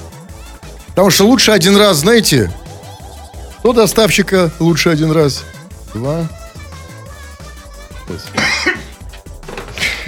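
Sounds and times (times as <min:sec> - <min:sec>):
speech: 0:01.0 - 0:02.6, 0:03.6 - 0:06.4
person coughing: 0:08.3 - 0:09.0.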